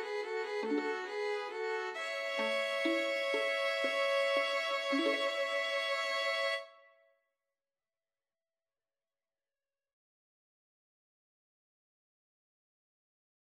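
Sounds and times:
violin trio: 0.0 - 6.7.

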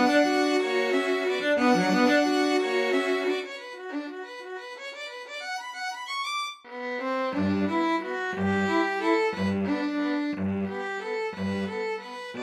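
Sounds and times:
cello: 0.0 - 4.2, 6.9 - 12.4
two violins: 0.0 - 12.4.

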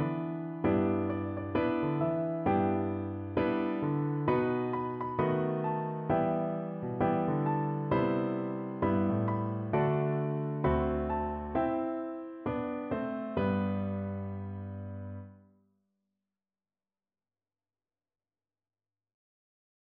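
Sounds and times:
piano duet: 0.0 - 15.5.

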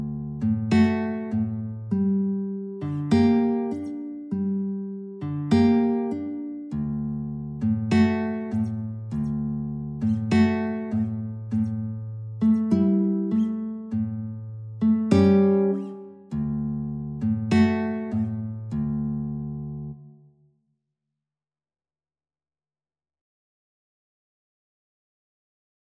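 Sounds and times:
guitar duet: 0.0 - 20.3.

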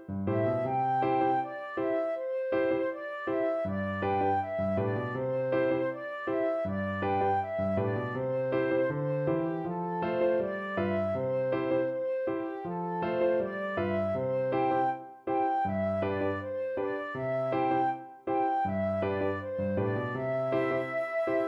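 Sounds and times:
flute: 0.3 - 21.4.

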